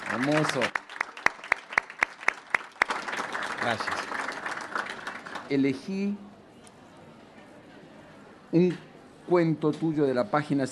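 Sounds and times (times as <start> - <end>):
audience applause: 0.0 - 5.5
speech: 0.1 - 0.8, 3.6 - 4.2, 5.5 - 6.3, 8.5 - 10.7.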